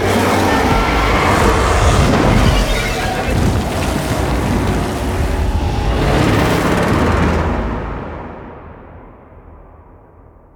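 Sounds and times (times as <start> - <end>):
fire death: 0.1 - 8.3.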